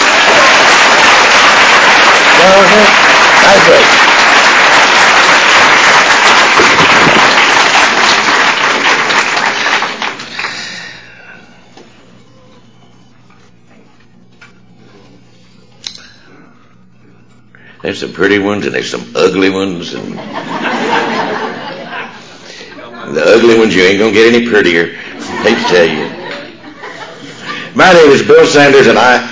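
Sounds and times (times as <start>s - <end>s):
audience applause welcoming a speaker: 0.0s - 11.0s
speech: 2.5s - 4.1s, 17.8s - 20.5s, 23.1s - 26.2s, 27.8s - 29.3s
laughter: 20.0s - 23.5s, 25.0s - 27.8s.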